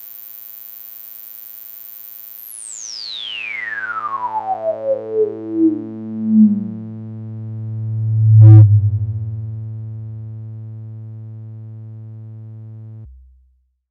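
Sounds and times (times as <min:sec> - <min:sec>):
Casio XW-P1 synthesizer with band-pass filter at max resonance and slow envelope: 0:03.3 - 0:11.4.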